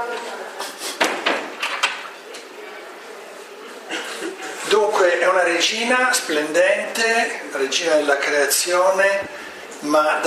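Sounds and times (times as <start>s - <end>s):
door being closed: 1.0s - 2.0s
speech: 5.3s - 10.2s.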